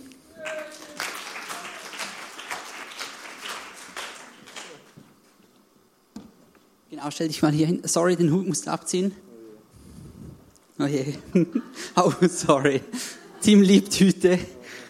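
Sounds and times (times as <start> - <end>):
audience applause for a volunteer: 0.3 - 5.0
speech: 7.0 - 9.3, 10.8 - 14.6
laughter: 11.2 - 14.6.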